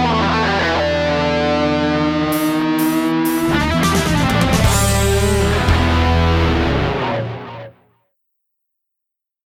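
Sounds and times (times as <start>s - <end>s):
instrumental electric guitars: 0.0s - 7.9s.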